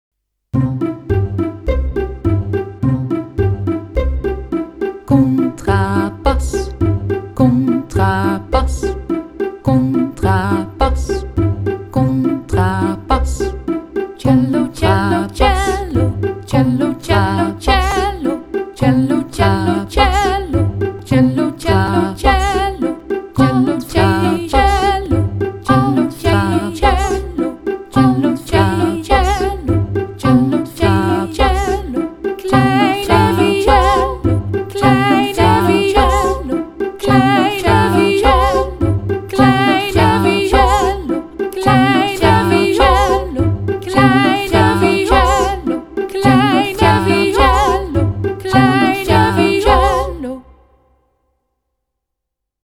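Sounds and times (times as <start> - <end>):
string orchestra: 0.6 - 50.2
person singing: 5.1 - 6.8, 7.4 - 9.0, 9.6 - 13.6, 14.2 - 50.5.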